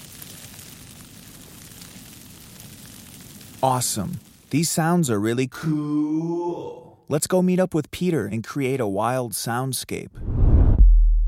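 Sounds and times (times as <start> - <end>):
snow pattering onto a parka: 0.0 - 4.7
speech: 3.6 - 10.3
low rumble: 10.2 - 11.2.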